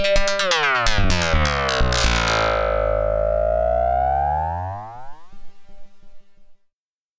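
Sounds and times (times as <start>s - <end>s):
Erica Synths Perkons HD 01 Karplus Strong synth: 0.1s - 5.7s.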